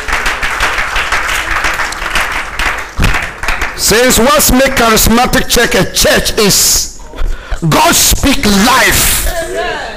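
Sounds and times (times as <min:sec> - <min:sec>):
audience clapping: 0:00.0 - 0:05.8
speech: 0:03.8 - 0:06.9, 0:07.6 - 0:09.9.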